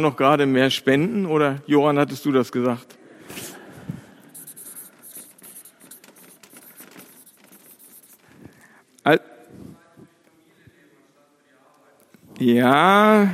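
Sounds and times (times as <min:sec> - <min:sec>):
speech: 0:00.0 - 0:03.0, 0:09.1 - 0:09.3, 0:12.4 - 0:13.3
writing scratching: 0:04.1 - 0:08.6.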